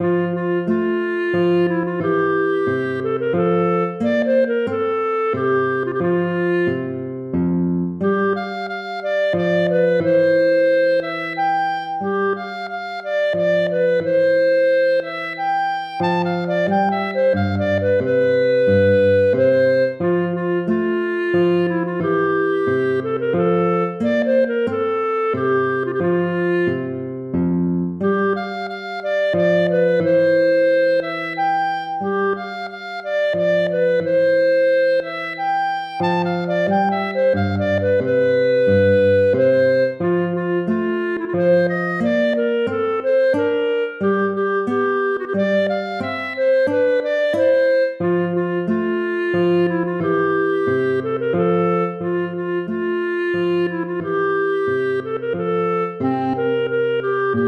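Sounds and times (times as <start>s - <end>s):
minuet: 0.0s - 57.4s.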